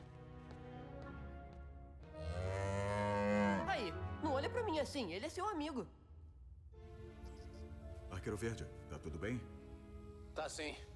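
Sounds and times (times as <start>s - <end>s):
cow mooing: 2.2s - 3.7s
speech: 4.8s - 6.0s, 8.2s - 9.6s, 10.4s - 10.9s.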